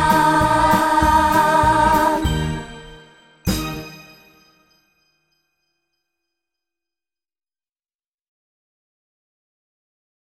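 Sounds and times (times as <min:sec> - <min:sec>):
Christmas song in Chinese: 0:00.0 - 0:06.0.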